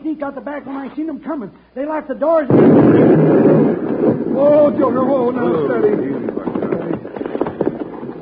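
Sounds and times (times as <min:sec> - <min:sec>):
speech: 0:00.2 - 0:06.5
dynamite explosion destroying a building: 0:02.5 - 0:08.1.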